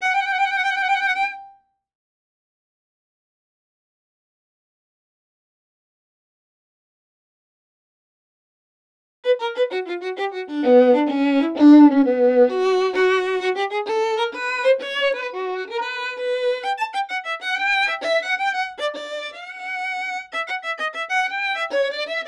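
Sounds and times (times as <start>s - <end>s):
gypsy violin: 0.0s - 1.6s, 9.2s - 22.2s.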